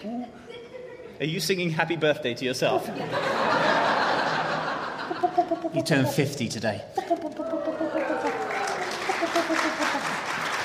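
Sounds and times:
speech: 0:01.2 - 0:03.9, 0:05.5 - 0:07.3
laughter: 0:02.8 - 0:10.6
audience applause: 0:07.4 - 0:10.6.

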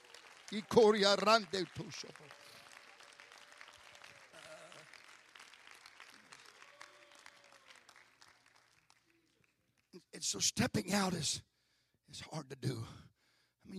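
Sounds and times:
audience clapping hands: 0:00.0 - 0:10.1
speech: 0:00.5 - 0:02.4, 0:10.2 - 0:11.5, 0:12.1 - 0:13.1.

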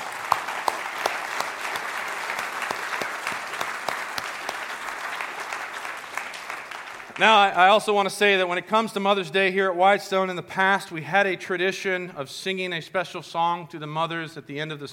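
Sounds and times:
crowd applause: 0:00.0 - 0:07.8
speech: 0:07.2 - 0:14.9.

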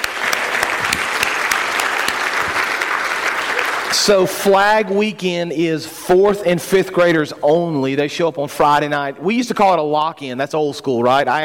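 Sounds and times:
audience applause congratulating children after a Flag Weekend event: 0:00.0 - 0:04.3
speech: 0:04.0 - 0:11.4.

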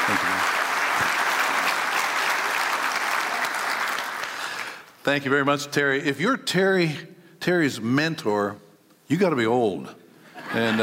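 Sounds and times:
audience applause welcoming a speaker at Nineveh: 0:00.0 - 0:04.9
speech: 0:05.0 - 0:10.8
laughter: 0:10.3 - 0:10.8.

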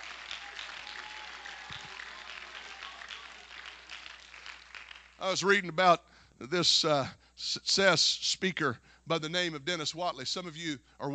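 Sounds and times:
audience clapping hands: 0:00.0 - 0:05.6
speech: 0:05.2 - 0:11.1.

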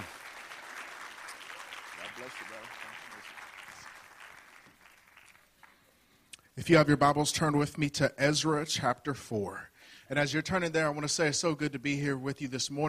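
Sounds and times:
audience hand clapping: 0:00.0 - 0:06.1
speech: 0:02.2 - 0:03.4, 0:06.6 - 0:12.8.

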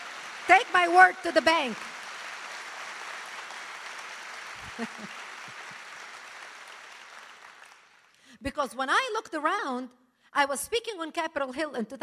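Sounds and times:
audience applause: 0:00.0 - 0:08.2
speech: 0:00.5 - 0:01.9, 0:04.8 - 0:05.2, 0:08.4 - 0:12.0
laughter: 0:04.6 - 0:05.9.

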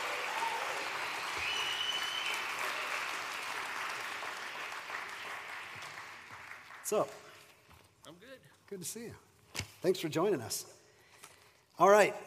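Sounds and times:
wild audience applause: 0:00.0 - 0:07.3
speech: 0:06.9 - 0:07.2, 0:08.7 - 0:10.8, 0:11.8 - 0:12.2.

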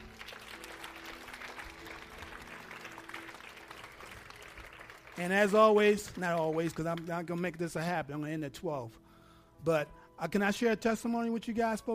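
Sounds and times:
crowd hand clapping applause: 0:00.0 - 0:07.2
speech: 0:05.2 - 0:09.0, 0:09.6 - 0:11.9.

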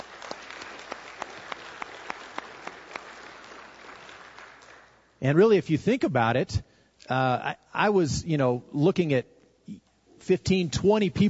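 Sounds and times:
applause: 0:00.0 - 0:05.2
speech: 0:05.2 - 0:11.2.

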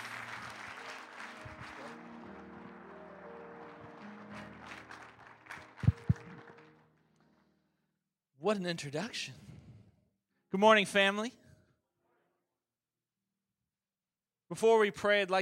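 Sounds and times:
church congregation clapping for a guest speaker: 0:00.0 - 0:07.2
speech: 0:08.4 - 0:09.5, 0:10.5 - 0:11.4, 0:14.6 - 0:15.4.

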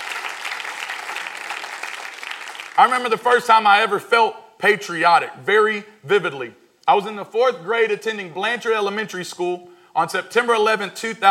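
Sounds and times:
congregation applauding during a church service: 0:00.0 - 0:03.3
speech: 0:02.8 - 0:11.3.

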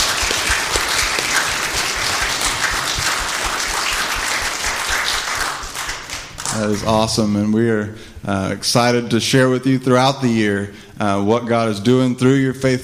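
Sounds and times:
audience applause: 0:00.0 - 0:06.9
speech: 0:06.6 - 0:12.8.

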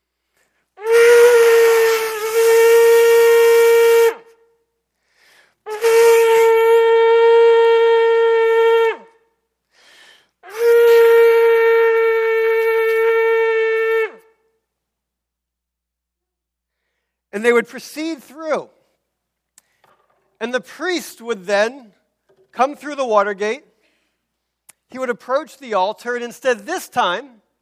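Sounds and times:
shofar horn blasts: 0:00.8 - 0:04.4, 0:05.7 - 0:09.3, 0:10.4 - 0:14.3
speech: 0:17.5 - 0:18.8, 0:20.5 - 0:22.0, 0:22.6 - 0:23.7, 0:24.9 - 0:27.4.

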